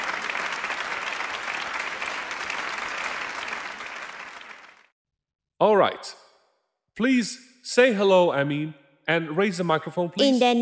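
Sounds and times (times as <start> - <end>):
audience applause: 0.0 - 4.9
speech: 5.6 - 6.2, 7.0 - 10.6.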